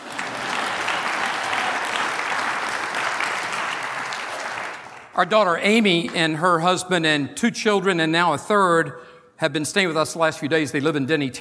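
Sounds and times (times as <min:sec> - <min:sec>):
audience applause: 0:00.0 - 0:05.2
speech: 0:05.2 - 0:11.3.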